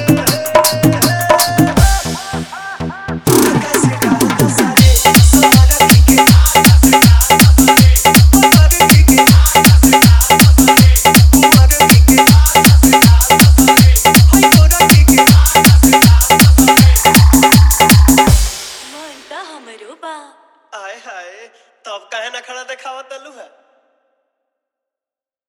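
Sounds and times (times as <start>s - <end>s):
Bhojpuri Holi hard bass dance mix: 0.0s - 19.9s.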